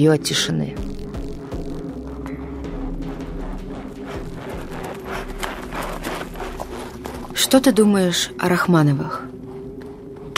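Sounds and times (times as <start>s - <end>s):
speech: 0.0s - 1.0s, 7.4s - 9.3s
horse hooves clip-clopping at a walk: 2.7s - 10.3s.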